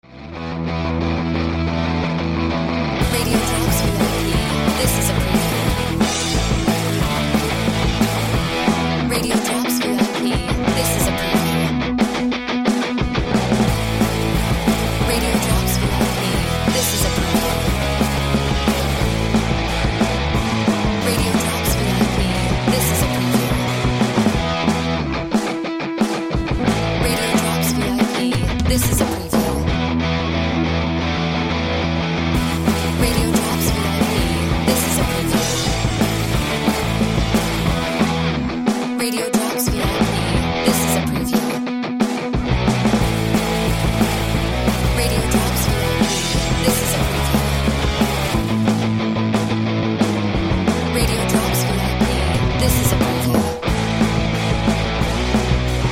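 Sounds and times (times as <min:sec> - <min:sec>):
background music bed: 0:00.3 - 0:55.9.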